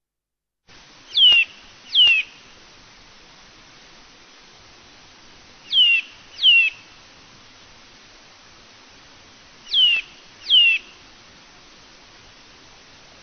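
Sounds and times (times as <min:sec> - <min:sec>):
Eurasian bullfinch soft clear piping whistles: 0:01.1 - 0:02.4, 0:05.7 - 0:06.8, 0:09.6 - 0:11.0.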